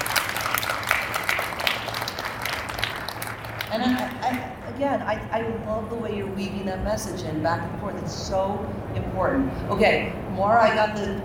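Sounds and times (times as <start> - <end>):
audience applause: 0.0 - 4.4
speech: 4.8 - 11.2.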